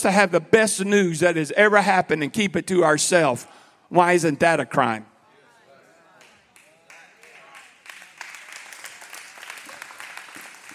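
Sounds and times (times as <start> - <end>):
speech: 0.0 - 5.1
audience clapping: 6.2 - 10.7.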